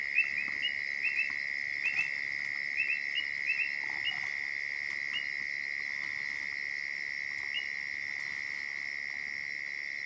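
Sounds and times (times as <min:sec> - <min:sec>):
shrill insect drone at dusk in the African savanna: 0:00.0 - 0:10.0
frog chirping calls at dusk in the African savanna: 0:00.1 - 0:04.3.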